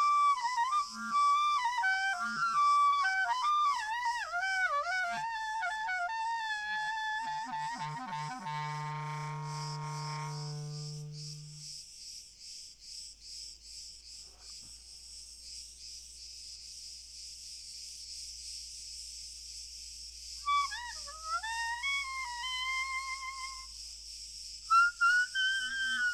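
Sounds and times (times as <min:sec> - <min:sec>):
chorus of crickets trilling: 0:00.0 - 0:26.1.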